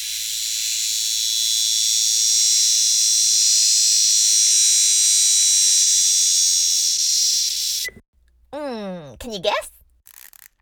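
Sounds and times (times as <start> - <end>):
cicada buzzing: 0.0 - 8.0
speech: 9.2 - 9.8.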